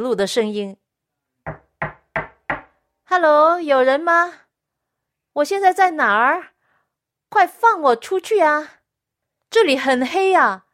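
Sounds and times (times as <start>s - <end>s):
speech: 0.0s - 0.8s, 3.1s - 4.4s, 5.4s - 6.5s, 7.3s - 8.8s, 9.5s - 10.6s
heavy knocking on a door: 1.5s - 2.7s.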